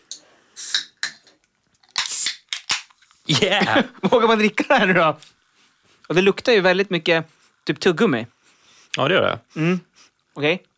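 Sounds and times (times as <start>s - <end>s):
soda fizzing hiss: 0.0s - 10.6s
soda can popping open: 0.1s - 3.0s
speech: 3.3s - 5.3s, 6.1s - 8.3s, 9.0s - 10.7s.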